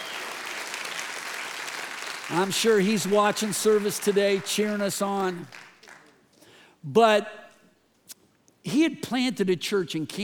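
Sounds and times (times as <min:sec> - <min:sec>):
audience applauding: 0:00.0 - 0:06.2
speech: 0:02.3 - 0:05.6, 0:06.8 - 0:07.4, 0:08.6 - 0:10.2.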